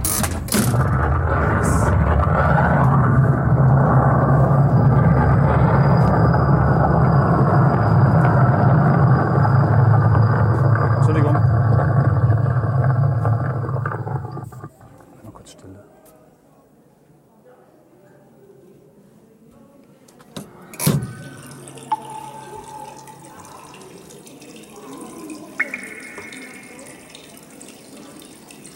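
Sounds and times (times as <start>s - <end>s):
explosion sound effect: 0.5s - 14.4s.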